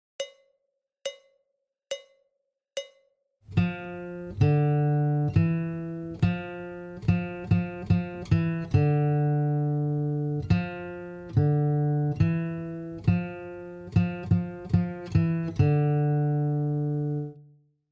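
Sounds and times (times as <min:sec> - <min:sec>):
guitar warm-up in F at medium pace: 0:03.5 - 0:17.5.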